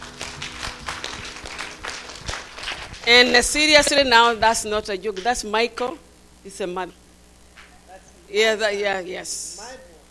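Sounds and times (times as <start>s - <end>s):
audience clapping: 0.0s - 3.6s
speech: 3.1s - 7.0s, 8.3s - 9.9s.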